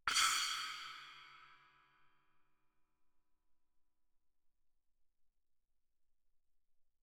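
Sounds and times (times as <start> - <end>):
suspended splash cymbal struck loudly with mallet: 0.1 - 1.6.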